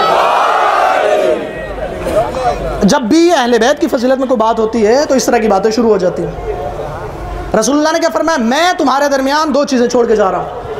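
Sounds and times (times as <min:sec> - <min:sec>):
crowd at a religious gathering chanting a slogan: 0:00.0 - 0:01.8
speech: 0:02.8 - 0:06.6, 0:07.5 - 0:10.6.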